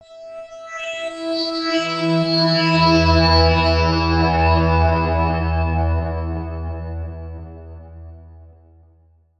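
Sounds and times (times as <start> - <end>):
zing synth pad: 0.2 - 8.7.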